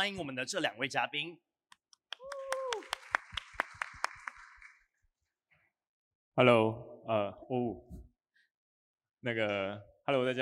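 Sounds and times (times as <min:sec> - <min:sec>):
speech: 0:00.0 - 0:01.5, 0:06.4 - 0:08.0, 0:09.2 - 0:10.3
audience clapping: 0:01.7 - 0:04.9
audience cheer: 0:02.2 - 0:03.2.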